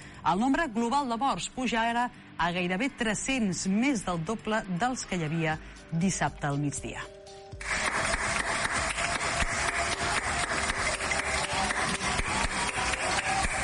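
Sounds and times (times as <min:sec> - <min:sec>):
speech: 0:00.2 - 0:07.8
balcony applause for health workers: 0:07.6 - 0:13.6.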